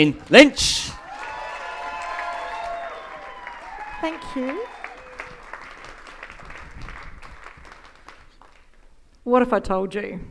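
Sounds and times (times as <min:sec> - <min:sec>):
speech: 0:00.0 - 0:01.0, 0:04.0 - 0:04.8, 0:09.3 - 0:10.2
audience applause at a TEDx stage: 0:01.0 - 0:08.9.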